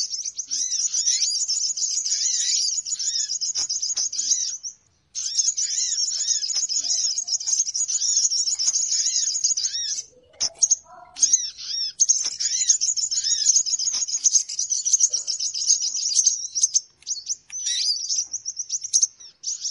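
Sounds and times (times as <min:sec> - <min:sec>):
birds twittering: 0:00.0 - 0:19.6.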